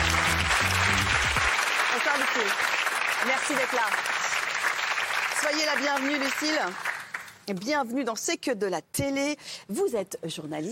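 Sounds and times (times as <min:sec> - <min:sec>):
studio audience applause: 0:00.0 - 0:07.3
speech: 0:02.4 - 0:04.2, 0:05.4 - 0:10.7.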